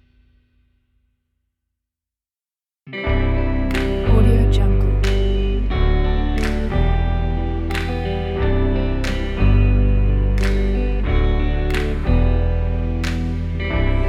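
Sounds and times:
calm motivational folk music: 3.1s - 14.0s.

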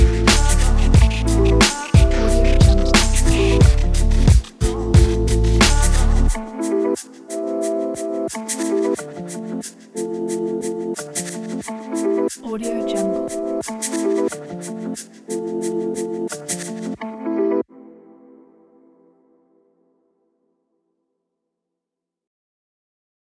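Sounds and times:
chill hip hop beats: 0.0s - 17.5s.

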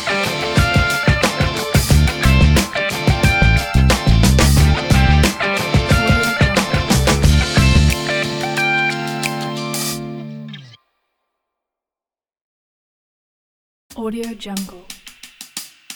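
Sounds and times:
soul music logo: 0.0s - 10.5s.

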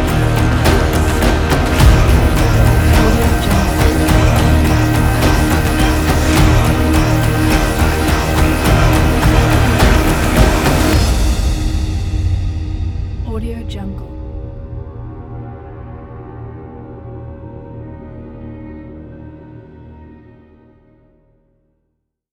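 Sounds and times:
medieval Viking cinematic soundtrack music: 0.0s - 19.7s.

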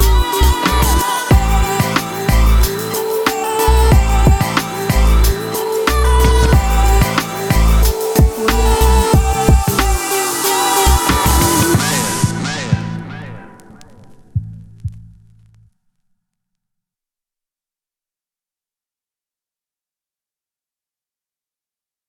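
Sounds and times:
positive fun hip hop: 0.0s - 13.6s.

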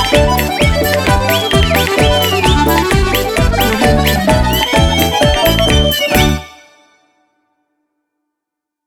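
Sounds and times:
Russian balalaika: 0.0s - 6.8s.

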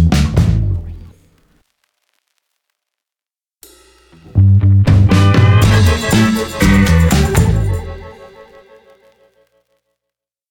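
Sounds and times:
retro funky logo jingle: 0.0s - 0.9s, 4.2s - 9.0s.

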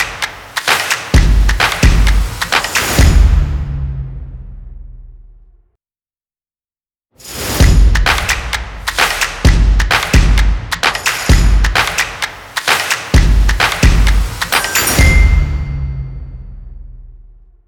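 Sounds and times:
claps in a logo: 0.0s - 3.0s, 7.9s - 15.0s
drums in a logo: 0.0s - 4.0s, 7.2s - 15.9s.

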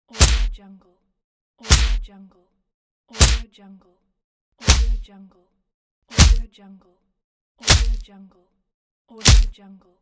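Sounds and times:
punches: 0.1s - 0.6s, 1.6s - 2.1s, 3.2s - 3.5s, 4.6s - 5.1s, 6.1s - 6.5s, 7.6s - 8.0s, 9.2s - 9.6s.

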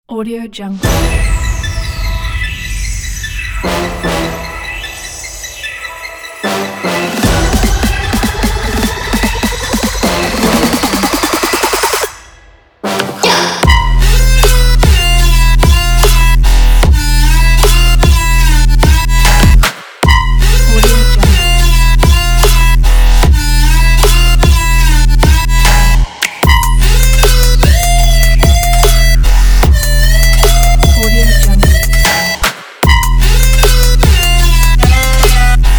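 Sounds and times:
aggressive hard trap music: 0.8s - 35.7s.

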